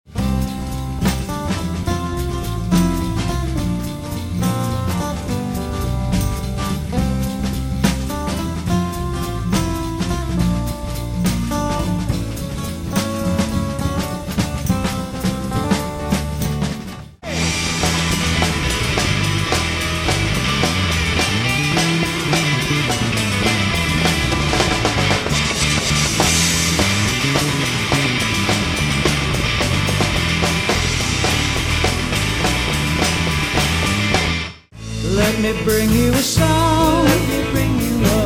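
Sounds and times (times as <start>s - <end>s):
bass: 0.0s - 38.2s.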